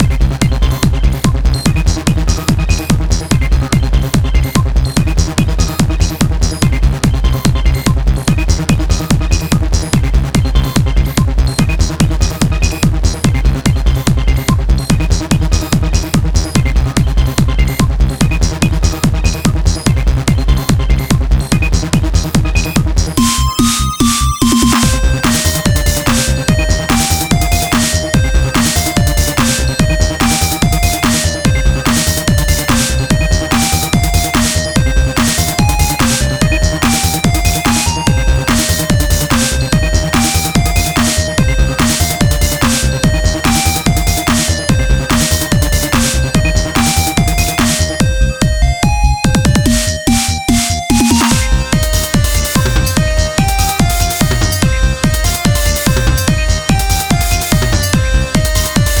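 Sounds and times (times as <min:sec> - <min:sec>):
gameplay music loop: 0:00.0 - 0:58.9.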